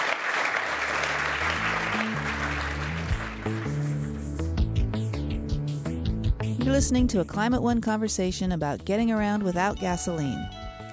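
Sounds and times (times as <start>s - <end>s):
audience applauding: 0.0s - 4.2s
bass-heavy musical tune: 0.8s - 10.9s
speech: 3.4s - 3.8s, 6.6s - 10.6s.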